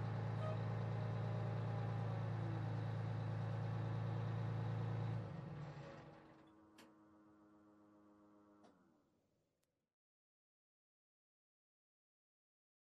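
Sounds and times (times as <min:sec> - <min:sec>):
fire truck driving heard from the cockpit: 0:00.0 - 0:06.1.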